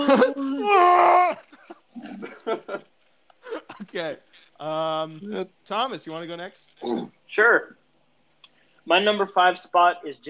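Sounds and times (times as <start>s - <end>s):
person imitating Chewbacca's scream: 0.0s - 1.4s
speech: 4.0s - 7.8s, 8.8s - 10.2s.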